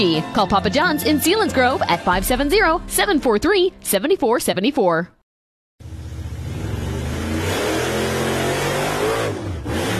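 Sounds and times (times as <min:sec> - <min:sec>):
speech: 0:00.0 - 0:05.2
loud engine revving: 0:05.8 - 0:09.9.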